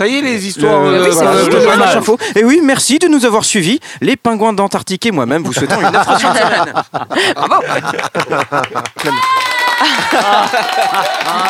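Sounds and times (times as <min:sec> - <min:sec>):
speech: 0:00.0 - 0:11.4
laughter: 0:05.4 - 0:11.4
recorded applause: 0:08.0 - 0:11.4.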